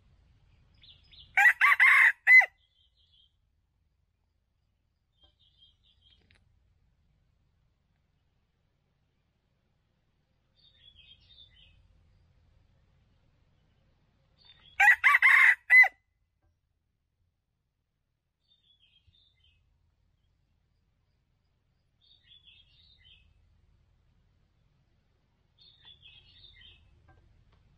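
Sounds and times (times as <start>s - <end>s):
red junglefowl crowing: 1.4s - 2.6s, 14.8s - 16.0s.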